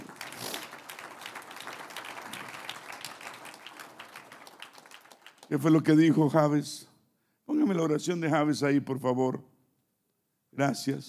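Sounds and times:
audience applause: 0.0s - 6.0s
speech: 5.5s - 6.9s, 7.7s - 9.5s, 10.6s - 11.0s.

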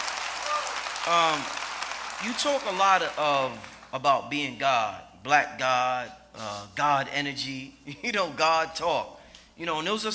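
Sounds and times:
round of applause: 0.0s - 4.0s
speech: 1.0s - 1.6s, 2.2s - 10.1s.

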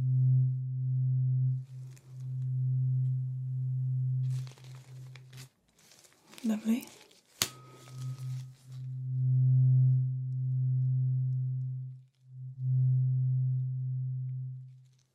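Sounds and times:
low humming tone during hearing test: 0.0s - 5.5s, 7.5s - 15.1s
speech: 6.4s - 7.0s.

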